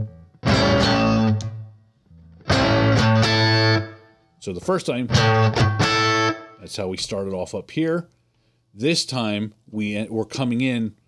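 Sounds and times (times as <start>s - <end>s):
distorted electric guitar hammer-on runs landing on low E string: 0.0s - 4.0s, 5.1s - 6.6s
speech: 4.4s - 5.9s, 6.6s - 11.0s.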